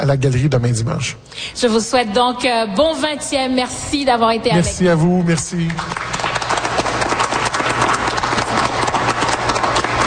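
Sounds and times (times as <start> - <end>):
speech: 0.0 - 6.2
crowd applauding: 4.8 - 10.0.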